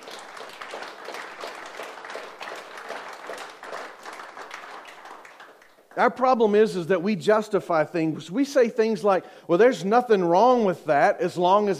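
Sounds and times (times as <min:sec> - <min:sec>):
audience applause: 0:00.0 - 0:06.0
speech: 0:06.0 - 0:11.7.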